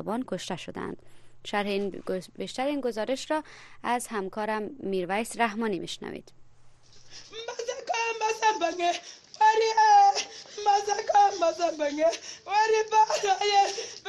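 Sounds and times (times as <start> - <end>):
speech: 0.0 - 6.4, 7.1 - 14.0
mother sobbing for her son killed in fighting: 7.1 - 14.0.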